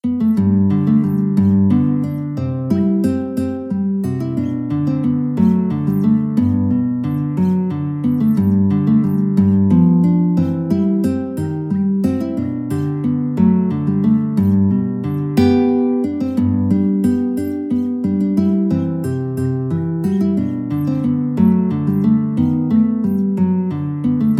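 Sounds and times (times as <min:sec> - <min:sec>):
guitar: 0:00.0 - 0:24.3.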